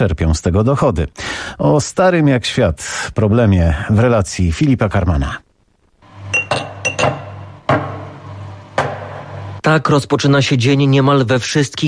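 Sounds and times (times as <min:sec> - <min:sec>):
speech: 0:00.0 - 0:05.4, 0:09.7 - 0:11.8
small glass vodka bottles clinking: 0:06.4 - 0:07.4.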